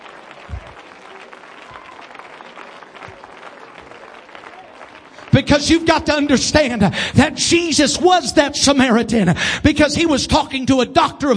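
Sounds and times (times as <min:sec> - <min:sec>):
audience clapping: 0:00.0 - 0:07.0
speech: 0:05.4 - 0:11.3.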